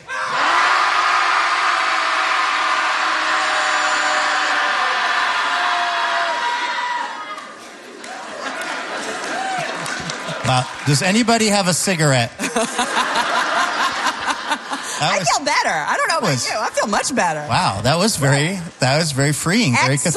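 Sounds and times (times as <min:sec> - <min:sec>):
crowd shouting together: 0:00.0 - 0:07.6
laughter: 0:07.4 - 0:11.5, 0:12.3 - 0:16.8
speech: 0:10.5 - 0:13.2, 0:15.0 - 0:20.1.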